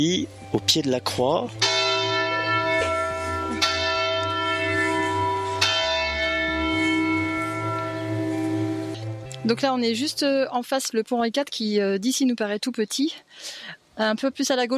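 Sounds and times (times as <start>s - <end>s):
speech: 0.0s - 1.8s, 9.4s - 14.7s
church bells ringing the hour: 1.5s - 10.0s.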